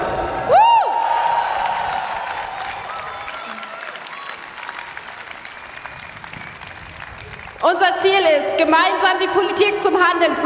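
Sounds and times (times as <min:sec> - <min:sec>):
crowd applauding and cheering at a demonstration: 0:00.0 - 0:07.8
whistle or whoop: 0:00.4 - 0:02.1, 0:02.7 - 0:04.4
speech: 0:07.7 - 0:10.4.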